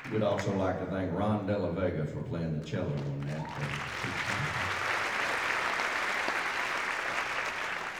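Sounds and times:
audience applause: 0.0s - 0.6s, 3.2s - 7.9s
speech: 0.1s - 4.8s.

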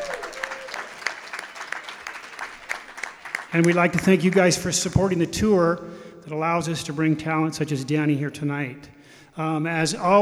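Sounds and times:
audience applause: 0.0s - 4.7s
speech: 3.5s - 10.1s.

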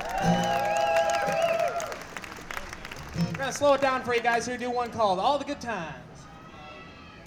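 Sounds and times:
concert audience whooping: 0.0s - 2.7s
concert audience applauding and cheering for a bluegrass band's mandolin player: 0.0s - 5.0s
speech: 3.5s - 6.0s.

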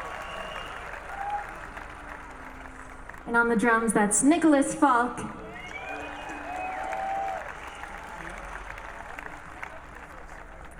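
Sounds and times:
brief whistle-like tones: 0.0s - 2.8s, 5.4s - 10.1s
audience applause for band member: 0.0s - 4.4s, 5.2s - 10.7s
faint crowd murmur: 0.0s - 10.7s
speech: 3.3s - 5.4s.

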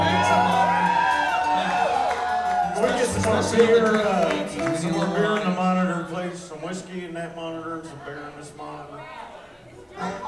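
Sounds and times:
concert audience cheering and whooping: 0.0s - 3.4s
speech: 3.2s - 10.2s.

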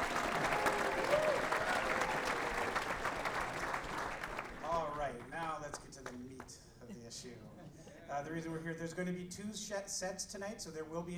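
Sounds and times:
audience applause: 0.0s - 6.2s
speech: 8.2s - 11.1s.

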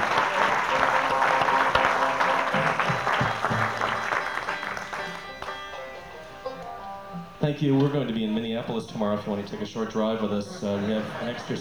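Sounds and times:
concert audience at Chicago's Old Town School applauding the sound engineer: 0.0s - 7.1s, 9.1s - 11.6s
laughter: 0.0s - 11.6s
speech: 7.5s - 11.6s.

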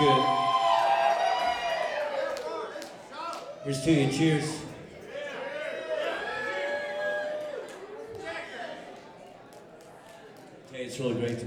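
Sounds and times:
lively audience cheering and whooping: 0.0s - 2.6s, 5.3s - 7.8s
speech: 3.6s - 4.7s, 11.0s - 11.4s.

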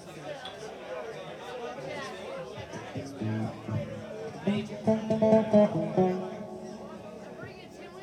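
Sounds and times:
instrument tuning: 3.2s - 8.0s.

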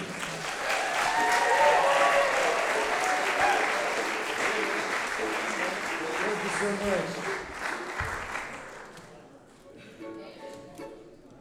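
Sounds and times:
audience applause welcoming a band: 0.0s - 9.2s
faint cheers: 0.6s - 4.1s.

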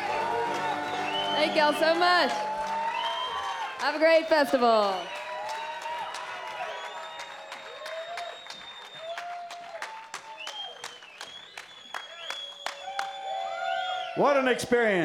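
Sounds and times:
festival crowd applause: 0.0s - 15.0s
speech: 1.4s - 2.5s, 3.8s - 5.2s, 14.2s - 15.0s.

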